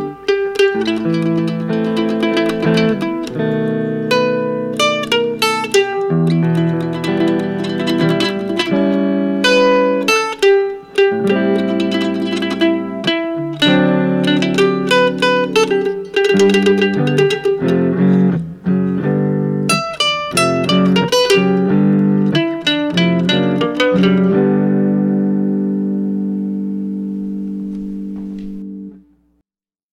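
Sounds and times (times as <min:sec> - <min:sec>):
slow country-like tune on mandolin: 0:00.0 - 0:29.1.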